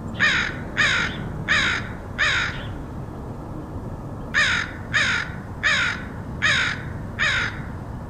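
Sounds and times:
crow harsh cawing: 0.2s - 2.8s, 4.3s - 7.8s.

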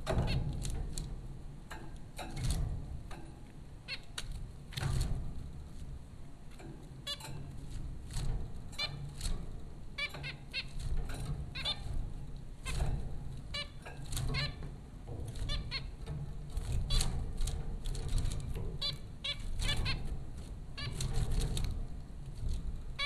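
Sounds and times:
low hum: 0.0s - 23.0s
rustling and taps: 0.0s - 23.0s
zebra finch calls: 3.9s - 4.3s, 7.0s - 7.4s, 8.8s - 9.2s, 10.0s - 10.8s, 11.5s - 12.0s, 13.5s - 14.6s, 15.3s - 16.0s, 18.8s - 20.1s, 20.8s - 21.2s.

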